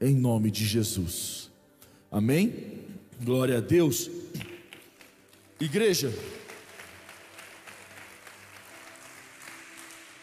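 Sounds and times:
speech: 0.0s - 1.5s, 2.1s - 4.5s, 5.6s - 6.4s
audience clapping: 4.4s - 10.2s.

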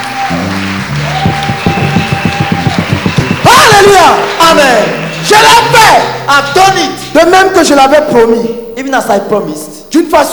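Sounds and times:
church congregation clapping in rhythm for Jesus: 0.0s - 7.1s
sustained instrumental tones: 0.0s - 8.8s
speech: 3.8s - 10.3s.

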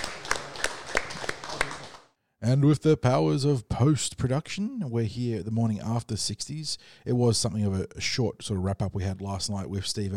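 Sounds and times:
audience applause: 0.0s - 2.1s
speech: 2.4s - 10.1s.

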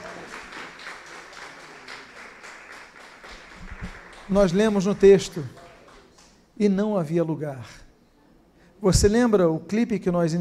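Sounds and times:
audience applause: 0.0s - 6.2s
speech: 4.3s - 5.6s, 6.6s - 7.8s, 8.8s - 10.3s.

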